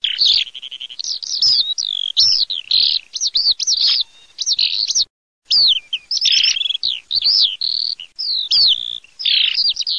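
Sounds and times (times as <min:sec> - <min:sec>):
Eurasian skylark song: 0:00.0 - 0:09.9.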